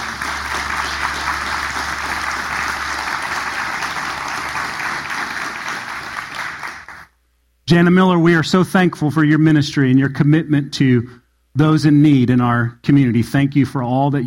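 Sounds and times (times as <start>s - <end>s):
audience applause: 0.0s - 7.1s
speech: 7.7s - 14.2s.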